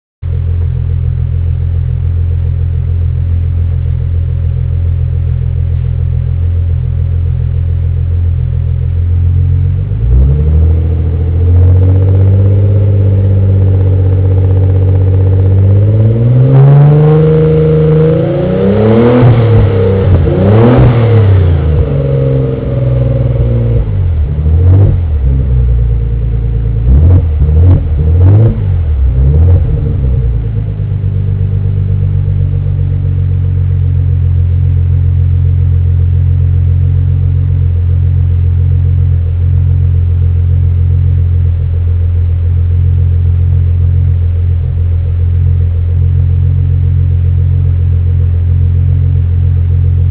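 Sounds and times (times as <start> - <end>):
exhaust: 0.2 - 50.1.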